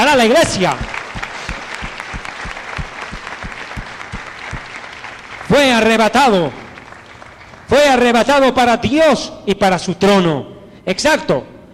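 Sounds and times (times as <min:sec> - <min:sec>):
speech: 0:00.1 - 0:00.9, 0:05.5 - 0:06.6, 0:07.7 - 0:11.5
audience applause: 0:00.4 - 0:08.2.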